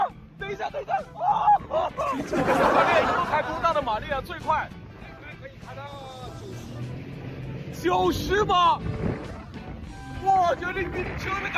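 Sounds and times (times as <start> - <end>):
laughter: 0.7 - 4.0
jet ski engine running on the water: 3.0 - 11.5
speech: 7.8 - 9.0, 10.2 - 11.5.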